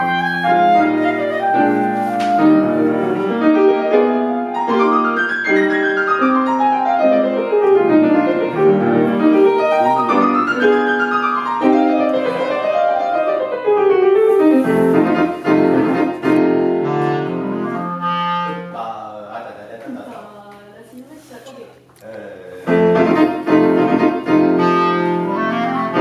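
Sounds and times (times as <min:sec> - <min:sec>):
clarinet in a sonata: 0:00.0 - 0:18.9, 0:22.7 - 0:26.0
piano in a sonata: 0:00.0 - 0:19.7, 0:22.4 - 0:26.0.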